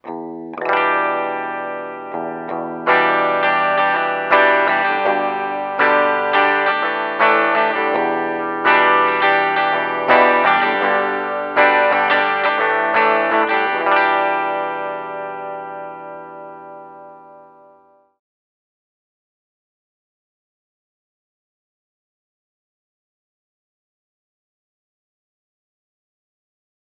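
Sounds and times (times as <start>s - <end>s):
clean British-style electric guitar: 0.0s - 18.1s.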